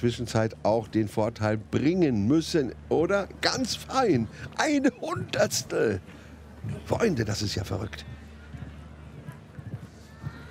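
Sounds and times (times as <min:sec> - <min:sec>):
speech: 0:00.0 - 0:08.2
show-jumping horse galloping on course: 0:04.4 - 0:10.4.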